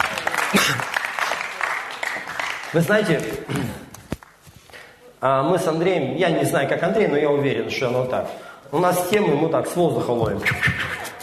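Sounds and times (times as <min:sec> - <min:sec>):
audience applause: 0:00.0 - 0:03.1
speech: 0:00.5 - 0:01.0, 0:02.7 - 0:03.8, 0:05.2 - 0:11.2.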